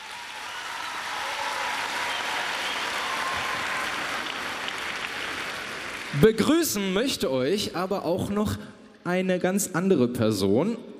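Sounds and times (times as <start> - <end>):
audience applause: 0.0 - 6.9
speech: 6.1 - 10.9.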